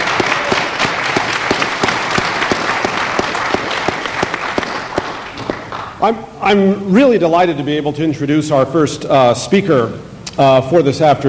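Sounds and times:
audience applause: 0:00.0 - 0:06.1
speech: 0:06.0 - 0:11.2.

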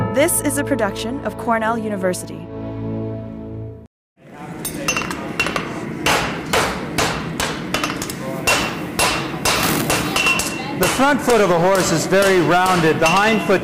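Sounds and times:
speech: 0:00.2 - 0:02.5, 0:11.0 - 0:13.6
hammer striking a horseshoe: 0:04.6 - 0:13.6.

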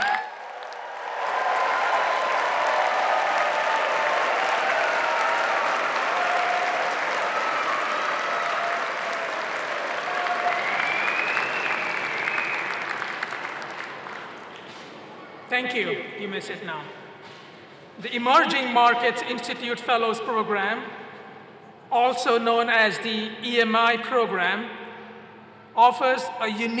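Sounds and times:
audience applause: 0:00.0 - 0:15.5
speech: 0:15.6 - 0:17.4, 0:18.0 - 0:21.0, 0:22.0 - 0:24.8, 0:25.8 - 0:26.7.

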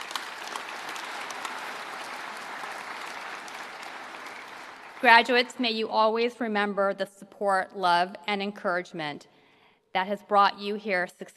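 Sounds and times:
audience applause at a law school commencement: 0:00.0 - 0:05.5
speech: 0:05.0 - 0:09.3, 0:10.0 - 0:11.3.

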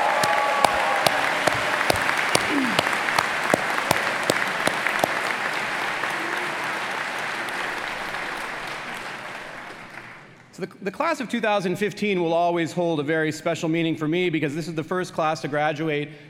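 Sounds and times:
audience applause: 0:00.0 - 0:10.0
speech: 0:10.6 - 0:16.2.

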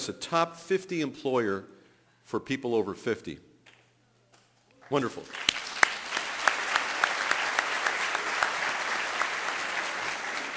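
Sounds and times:
speech: 0:00.0 - 0:03.5, 0:04.9 - 0:05.5
audience applause: 0:05.3 - 0:10.5.

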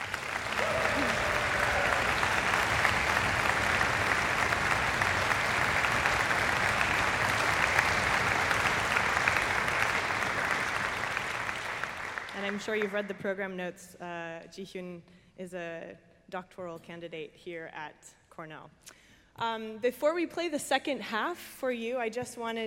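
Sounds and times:
concert audience applauding a composer at a Cornell performance: 0:00.0 - 0:13.0
speech: 0:12.6 - 0:22.6.

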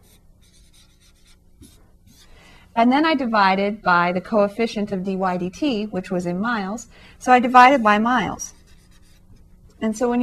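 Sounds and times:
writing on a board: 0:00.0 - 0:02.3
speech: 0:02.8 - 0:08.5, 0:09.8 - 0:10.2.

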